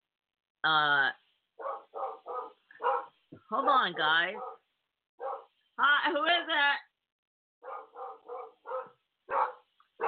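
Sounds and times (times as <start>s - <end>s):
speech: 0.6s - 1.2s, 3.5s - 4.5s, 5.8s - 6.9s
dog barking loudly: 1.6s - 5.5s, 7.6s - 10.0s.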